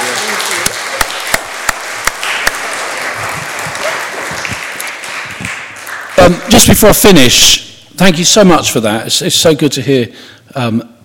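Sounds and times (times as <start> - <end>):
audience applause: 0.0 - 7.0
speech: 6.2 - 10.9.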